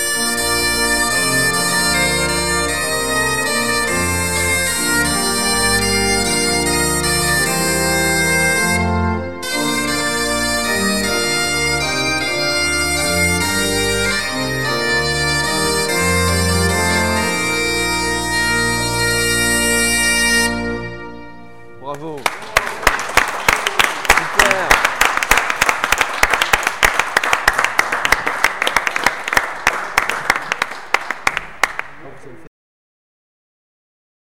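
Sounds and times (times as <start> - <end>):
bombarde playing: 0.0 - 23.1
organ playing: 0.0 - 31.7.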